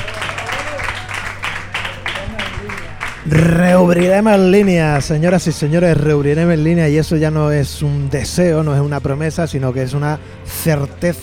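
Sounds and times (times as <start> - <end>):
audience applause: 0.0 - 5.7
speech: 3.3 - 11.2.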